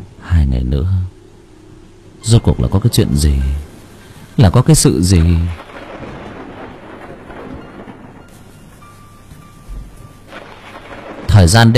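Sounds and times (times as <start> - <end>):
speech: 0.5 - 1.0, 2.3 - 3.7, 4.4 - 5.7, 11.4 - 11.7
steady rain pattering at night: 2.7 - 11.7.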